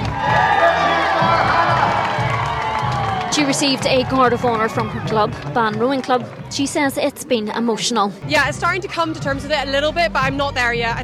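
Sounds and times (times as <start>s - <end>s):
supporters clapping and cheering on Bridge Street: 0.0s - 7.5s
speech: 3.4s - 11.0s.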